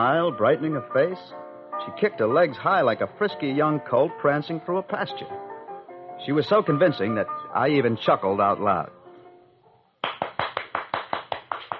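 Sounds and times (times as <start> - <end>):
speech: 0.0 - 5.5, 6.2 - 9.0
one person clapping hands: 10.0 - 11.7.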